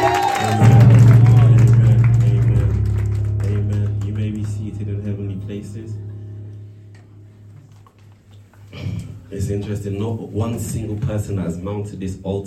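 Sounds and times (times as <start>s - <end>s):
audience clapping: 0.0s - 4.8s
low sustained musical tone: 0.5s - 8.6s
speech: 9.4s - 12.4s.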